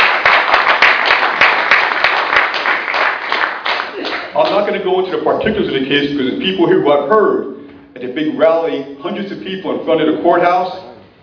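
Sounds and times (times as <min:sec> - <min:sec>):
crowd applauding: 0:00.0 - 0:04.6
speech: 0:04.8 - 0:10.9.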